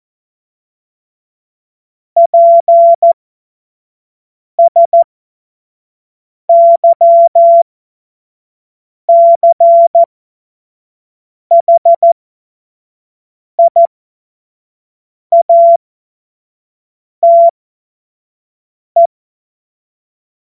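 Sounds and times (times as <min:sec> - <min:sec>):
CW Morse code beeps: 0:02.2 - 0:03.2, 0:04.6 - 0:05.1, 0:06.5 - 0:07.6, 0:09.1 - 0:10.1, 0:11.5 - 0:12.2, 0:13.6 - 0:13.9, 0:15.3 - 0:15.8, 0:17.2 - 0:17.5.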